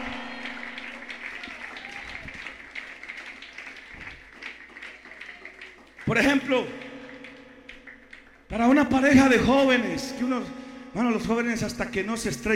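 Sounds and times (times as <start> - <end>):
audience applauding: 0.0 - 8.8
speech: 6.1 - 6.8, 8.5 - 12.5.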